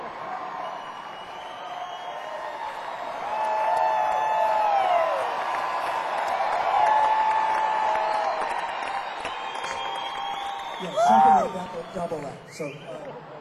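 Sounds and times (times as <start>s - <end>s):
live audience applause: 0.0s - 13.3s
shrill whistles and whoops: 0.4s - 5.3s, 7.6s - 13.0s
speech: 11.8s - 13.2s.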